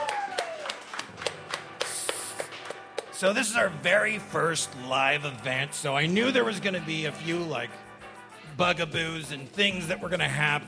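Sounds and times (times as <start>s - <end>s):
audience applause: 0.0s - 3.1s
speech: 3.2s - 7.8s, 8.6s - 10.6s.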